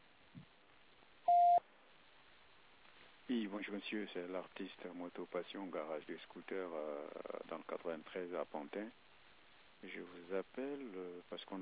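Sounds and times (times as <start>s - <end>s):
voicemail beep tone: 1.3s - 1.6s
speech: 3.3s - 9.0s, 9.8s - 11.6s.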